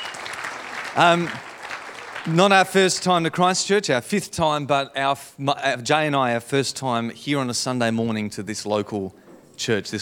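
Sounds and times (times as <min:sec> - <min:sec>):
crowd clapping: 0:00.0 - 0:03.3
speech: 0:01.0 - 0:01.5, 0:02.2 - 0:10.0.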